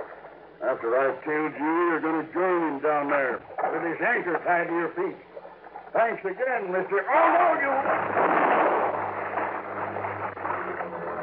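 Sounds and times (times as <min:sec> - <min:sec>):
speech: 0:00.6 - 0:05.3, 0:05.9 - 0:08.4
gunshot: 0:07.7 - 0:10.8.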